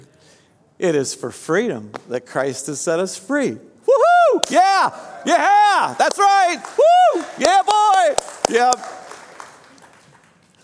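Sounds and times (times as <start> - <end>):
speech: 0.8 - 3.7, 4.4 - 9.0
crowd clapping: 4.4 - 10.6.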